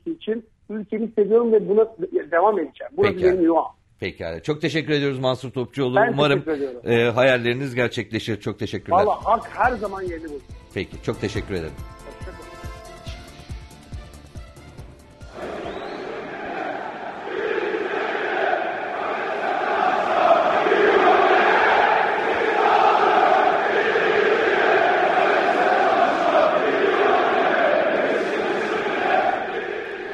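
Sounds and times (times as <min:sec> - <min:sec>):
speech: 0:00.1 - 0:12.0
stadium crowd chanting: 0:15.3 - 0:30.1.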